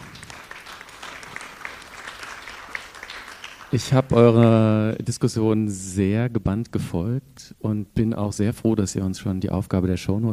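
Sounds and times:
audience applause: 0.0s - 4.5s
speech: 3.7s - 10.3s.

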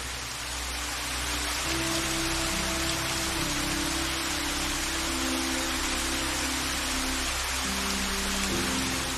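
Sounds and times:
rushing waterfall: 0.0s - 9.1s.

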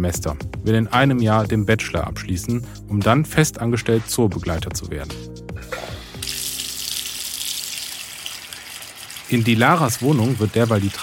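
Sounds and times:
speech: 0.0s - 5.4s, 9.3s - 11.0s
washing dishes in a bathroom sink: 5.8s - 11.0s.

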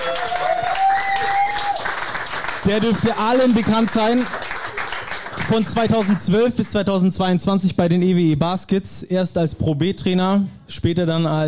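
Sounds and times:
crowd applause for a guest former basketball coach at a live event: 0.0s - 6.6s
speech: 2.6s - 4.4s, 5.4s - 11.4s.

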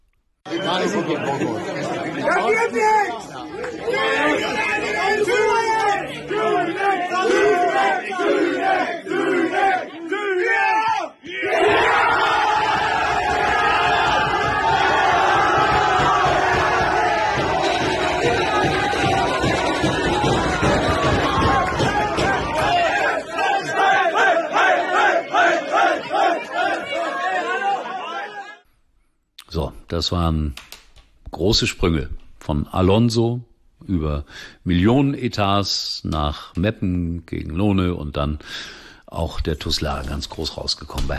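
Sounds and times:
football fans cheering after penalty shootout: 0.5s - 28.6s
speech: 0.6s - 4.6s, 29.9s - 30.7s, 31.4s - 41.1s.

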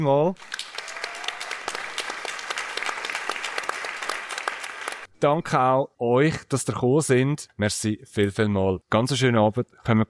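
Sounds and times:
speech: 0.0s - 0.6s, 5.2s - 10.0s
audience applause: 0.4s - 5.1s.

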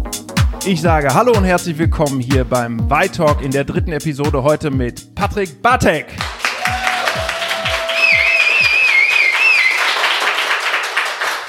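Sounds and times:
speech: 0.6s - 6.3s
audience clapping at a live talk recording in the Y pop-up store in Berlin: 6.2s - 11.4s
warbling whistle: 7.9s - 10.0s.

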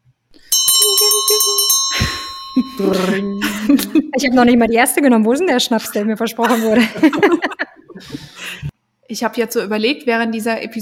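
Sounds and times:
small bell ringing rapidly to announce final round: 0.5s - 4.4s
people talking and laughing: 0.9s - 8.7s
speech: 2.6s - 8.2s, 9.1s - 10.8s.

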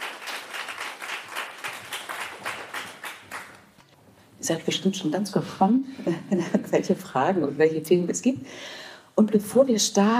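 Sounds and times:
crowd warm applause: 0.0s - 3.6s
speech: 4.4s - 10.1s.

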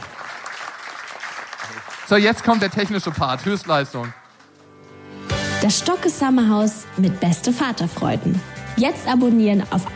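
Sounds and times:
crowd applauding: 0.0s - 4.8s
speech: 1.7s - 4.2s, 5.6s - 9.9s.

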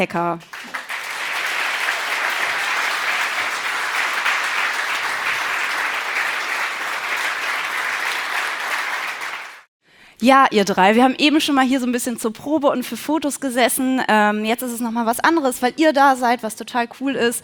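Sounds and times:
speech: 0.0s - 0.6s, 10.2s - 17.4s
audience applause: 0.4s - 9.7s.

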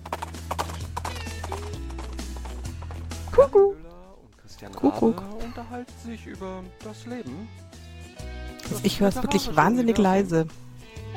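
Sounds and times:
horse hooves galloping: 0.0s - 4.0s
speech: 3.4s - 3.8s, 4.6s - 7.6s, 8.7s - 10.6s
whinny-like sound: 3.4s - 3.8s.

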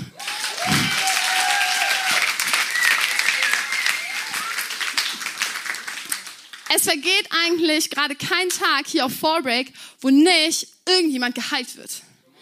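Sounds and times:
audience applause: 0.0s - 6.8s
speech: 6.8s - 12.1s.

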